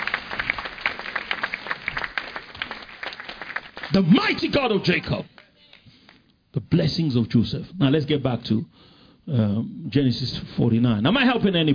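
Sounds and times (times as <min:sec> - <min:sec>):
audience clapping: 0:00.0 - 0:06.3
speech: 0:03.9 - 0:05.4, 0:06.7 - 0:11.7.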